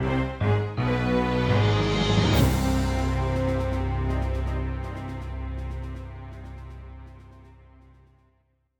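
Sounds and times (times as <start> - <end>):
fanfare: 0.6 - 6.2.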